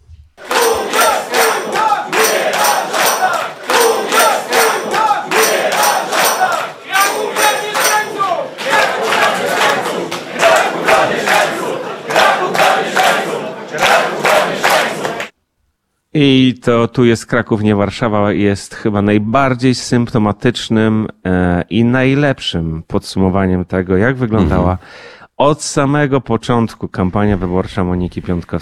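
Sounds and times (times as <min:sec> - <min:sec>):
campaign staff shouting and cheering: 0:00.4 - 0:15.3
speech: 0:16.2 - 0:28.6.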